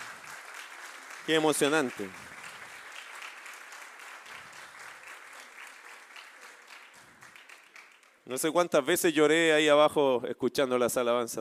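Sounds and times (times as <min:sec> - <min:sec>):
crowd applause: 0:00.0 - 0:08.3
speech: 0:01.3 - 0:02.3, 0:08.3 - 0:11.3.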